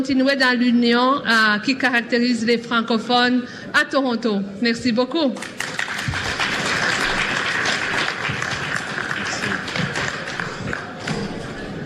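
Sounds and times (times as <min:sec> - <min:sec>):
speech: 0:00.0 - 0:05.7
audience applause for panelists: 0:05.4 - 0:11.7.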